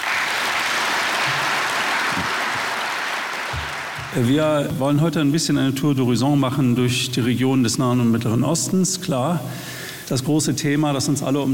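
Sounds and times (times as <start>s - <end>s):
audience applause: 0.0s - 4.5s
speech: 4.2s - 11.5s.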